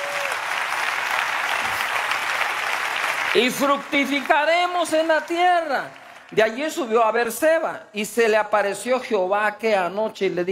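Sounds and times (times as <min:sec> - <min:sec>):
applause: 0:00.0 - 0:07.2
speech: 0:03.3 - 0:10.5.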